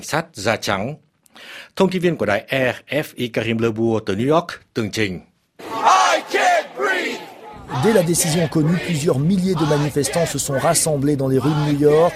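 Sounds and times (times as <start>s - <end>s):
speech: 0.0s - 5.3s, 7.7s - 12.1s
street protest crowd chanting a slogan in New York: 5.6s - 12.1s.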